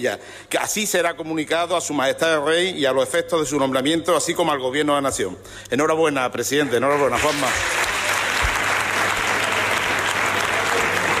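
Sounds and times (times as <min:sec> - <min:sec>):
speech: 0:00.0 - 0:08.0
parliament assembly applauding elected president: 0:06.8 - 0:11.1.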